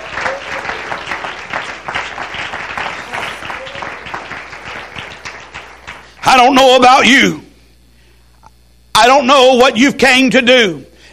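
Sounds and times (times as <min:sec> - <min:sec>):
audience clapping: 0:00.0 - 0:06.6
speech: 0:06.4 - 0:07.4, 0:09.0 - 0:10.9.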